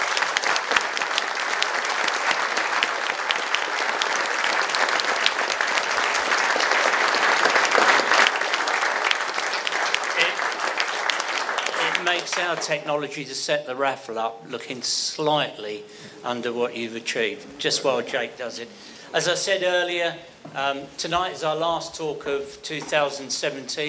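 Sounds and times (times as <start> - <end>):
audience applause: 0.0 - 12.9
speech: 12.4 - 23.8.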